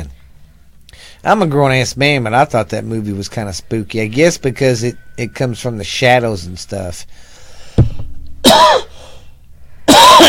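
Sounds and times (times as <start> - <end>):
speech: 1.2 - 7.3
bump against the microphone: 7.8 - 8.2
person coughing: 8.4 - 9.2, 9.9 - 10.2.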